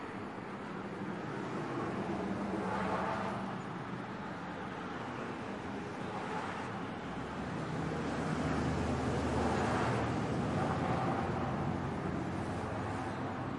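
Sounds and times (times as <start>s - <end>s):
traffic: 0.0s - 13.5s.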